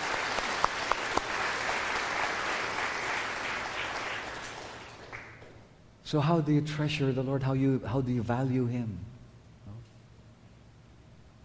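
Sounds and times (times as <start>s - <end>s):
church congregation applauding: 0.0s - 5.7s
speech: 6.1s - 9.1s.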